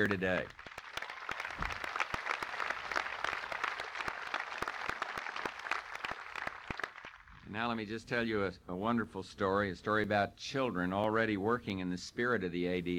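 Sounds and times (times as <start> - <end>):
speech: 0.0 - 0.7, 7.5 - 12.9
audience applause: 0.0 - 7.5.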